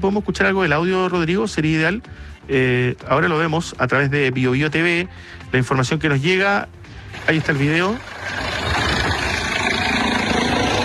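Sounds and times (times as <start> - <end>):
speech: 0.0 - 8.6
Carabineros police helicopter landing on a road: 8.0 - 10.8.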